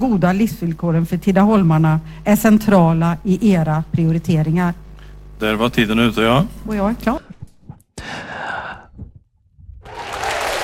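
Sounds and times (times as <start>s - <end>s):
speech: 0.0s - 4.8s, 5.4s - 7.3s
applause: 9.8s - 10.6s.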